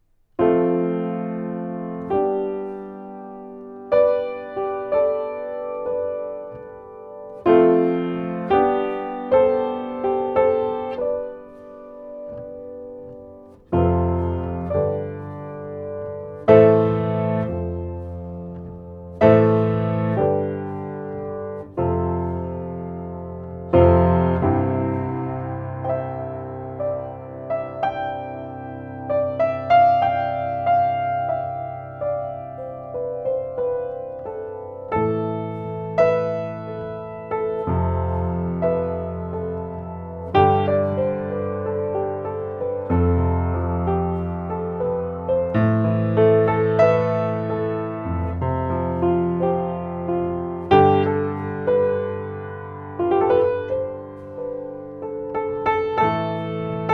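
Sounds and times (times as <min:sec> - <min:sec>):
piano: 0:00.0 - 0:56.9.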